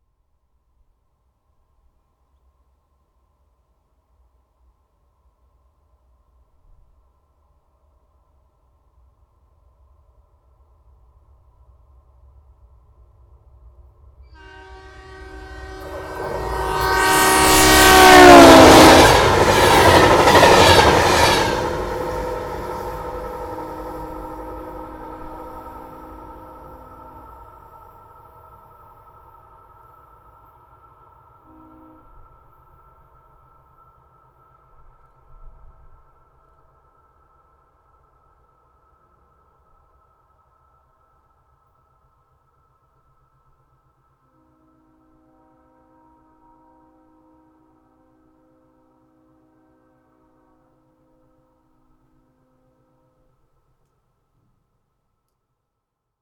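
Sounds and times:
diesel passenger train: 5.5s - 54.2s.

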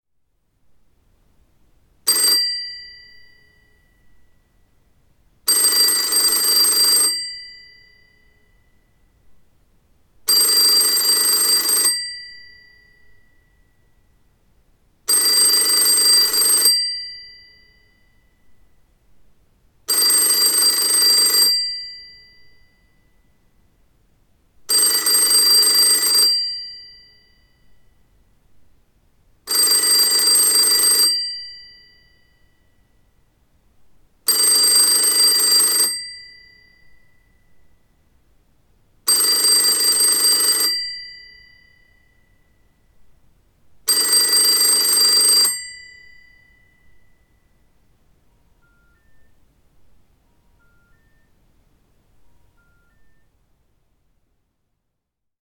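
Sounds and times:
phone ringing: 2.1s - 3.8s, 5.5s - 8.5s, 10.3s - 13.5s, 15.1s - 18.0s, 19.9s - 22.8s, 24.7s - 27.5s, 29.5s - 32.3s, 34.3s - 37.4s, 39.1s - 42.2s, 43.9s - 47.2s, 48.5s - 49.5s, 50.2s - 51.4s, 52.3s - 53.3s.

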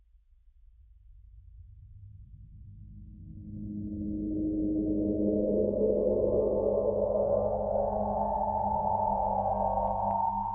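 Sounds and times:
subsonic wave: 4.0s - 10.5s.

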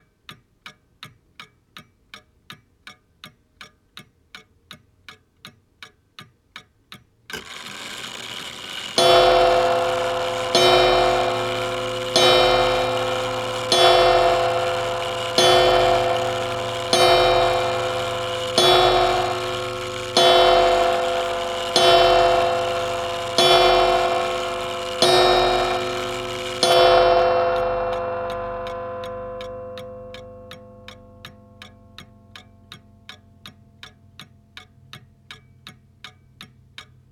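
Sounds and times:
old clock striking twelve: 7.3s - 34.7s.

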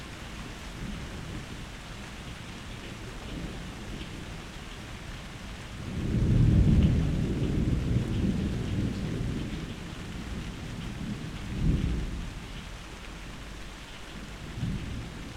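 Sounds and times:
rain: 0.0s - 15.3s
thunder: 5.8s - 12.4s, 14.5s - 15.3s.

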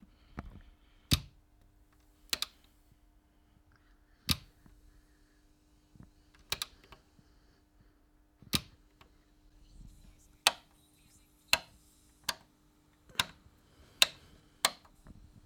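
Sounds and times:
old switches: 1.1s - 2.8s, 4.3s - 4.7s, 6.3s - 7.0s, 8.4s - 9.2s, 11.5s - 15.4s.

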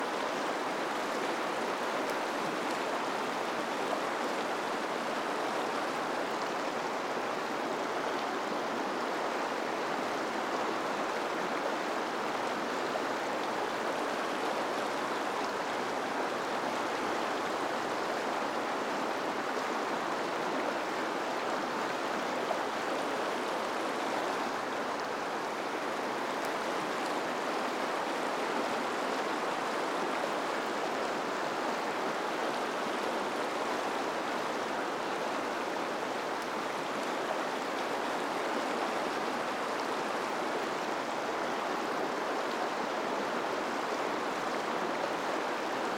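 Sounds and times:
rushing water: 0.0s - 45.9s.

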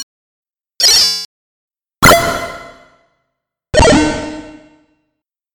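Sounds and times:
harmonic bleep with reverb: 2.1s - 3.0s, 3.8s - 4.8s.

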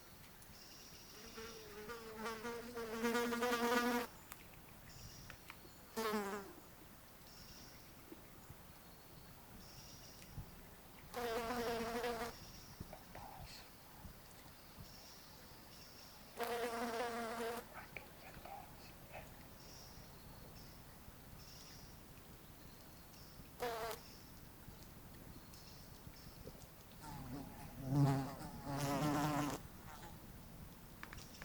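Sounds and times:
fly wing buzzing: 1.2s - 4.1s, 11.2s - 12.4s, 16.4s - 17.7s, 23.6s - 24.0s, 27.0s - 30.1s.

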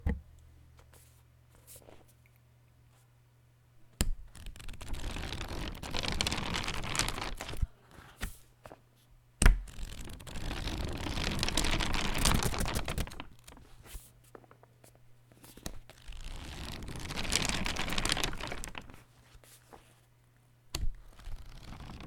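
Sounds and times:
book pages flipping: 4.0s - 8.8s, 9.4s - 20.1s, 20.8s - 22.0s.

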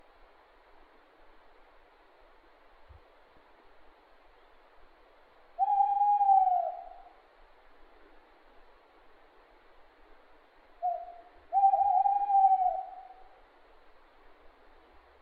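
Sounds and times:
owl giving long level hoots: 5.6s - 7.2s, 10.8s - 13.3s.

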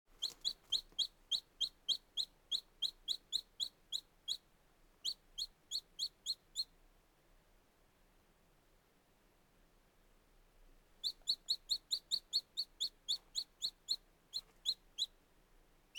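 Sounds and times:
very young chicken chicks peeping: 0.1s - 4.4s, 5.0s - 6.7s, 11.0s - 15.2s.

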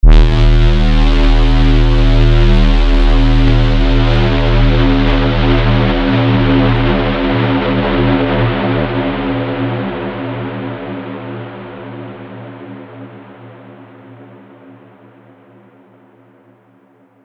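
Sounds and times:
super loud horn: 0.0s - 9.6s.

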